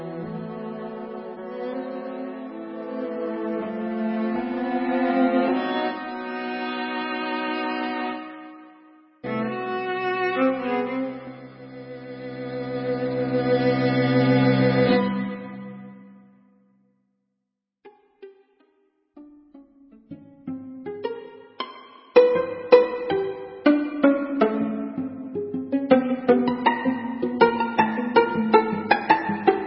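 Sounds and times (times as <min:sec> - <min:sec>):
string trio playing: 0:00.0 - 0:16.2, 0:17.9 - 0:29.6.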